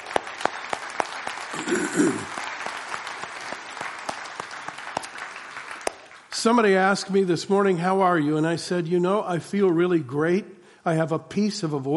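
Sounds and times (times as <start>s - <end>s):
audience applause at a morning church-style gathering: 0.0s - 6.3s
speech: 1.5s - 2.4s, 6.4s - 11.9s.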